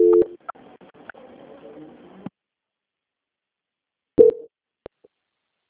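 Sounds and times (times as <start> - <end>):
short beep: 0.0 - 0.4, 4.2 - 4.5
thin low telephone line tone: 0.0 - 0.4.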